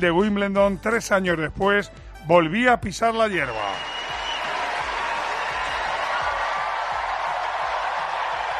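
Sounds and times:
speech: 0.0 - 3.9
huge crowd clapping at a tennis court: 3.6 - 8.5.

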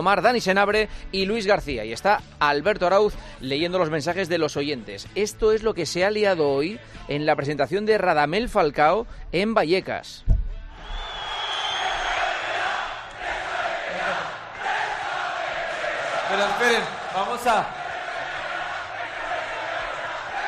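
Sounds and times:
speech: 0.0 - 10.4, 16.3 - 17.8
crowd shouting at a press conference: 11.2 - 20.4.

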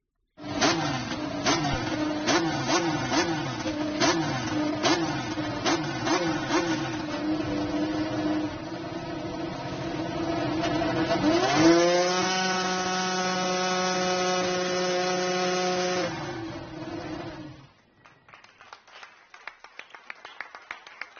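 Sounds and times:
Formula 1 Renault engine starting up: 0.4 - 17.8
scattered claps: 18.0 - 21.1.

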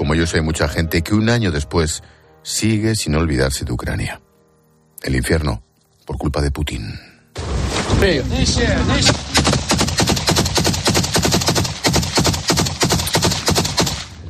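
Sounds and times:
speech: 0.1 - 4.2, 5.0 - 7.1, 7.9 - 9.6
wartime automatic gunfire: 9.0 - 14.2.

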